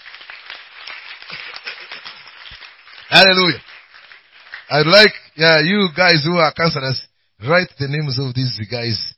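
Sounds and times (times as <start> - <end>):
audience clapping hands: 0.0 - 5.9
speech: 3.1 - 3.7, 4.7 - 9.1.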